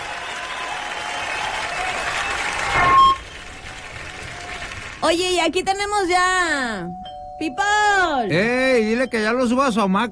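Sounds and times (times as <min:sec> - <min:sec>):
audience applause: 0:00.0 - 0:05.4
speech: 0:05.1 - 0:10.1.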